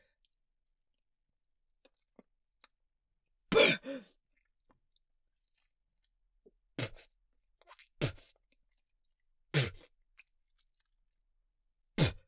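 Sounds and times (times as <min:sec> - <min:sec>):
person spitting: 0:03.5 - 0:04.0, 0:07.7 - 0:08.4, 0:09.5 - 0:09.9, 0:12.0 - 0:12.2.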